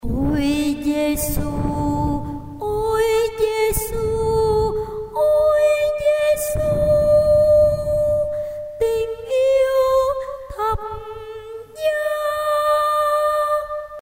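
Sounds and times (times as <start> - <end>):
soprano singing: 0.0 - 14.0.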